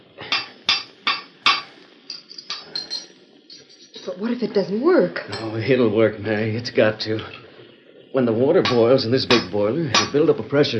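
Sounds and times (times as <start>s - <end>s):
hand tools clanking on a metal contraption: 0.3s - 4.1s, 8.6s - 10.2s
speech: 4.0s - 7.4s, 8.1s - 10.7s.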